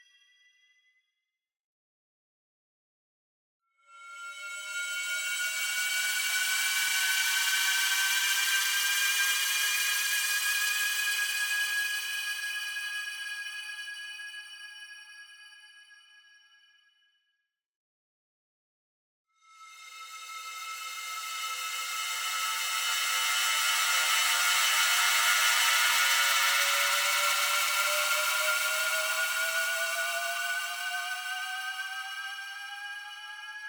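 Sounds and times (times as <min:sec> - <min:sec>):
ascending metal crystal shimmer: 0:04.0 - 0:14.0, 0:19.5 - 0:33.6.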